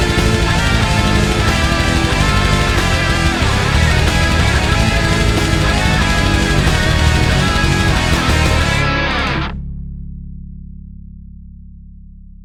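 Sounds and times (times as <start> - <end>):
rock cover song: 0.0 - 9.6.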